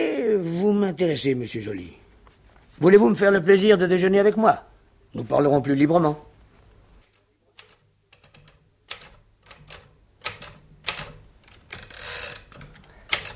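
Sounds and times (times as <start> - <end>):
speech: 0.6 - 2.0, 2.8 - 6.3
keys clacking on a children's typewriter: 7.6 - 13.3.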